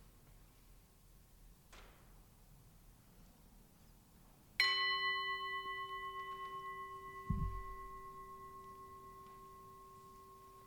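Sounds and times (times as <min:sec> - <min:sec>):
meditation bell: 0:04.6 - 0:10.6.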